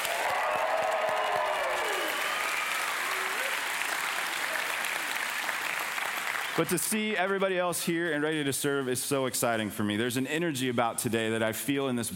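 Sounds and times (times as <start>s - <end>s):
scattered cheers and whoops: 0.0s - 5.3s
audience applause: 0.0s - 7.4s
speech: 6.6s - 12.1s.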